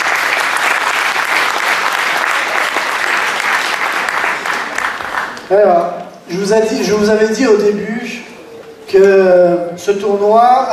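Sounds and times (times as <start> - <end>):
audience applause: 0.0 - 5.5
speech: 5.5 - 8.3, 8.9 - 10.7.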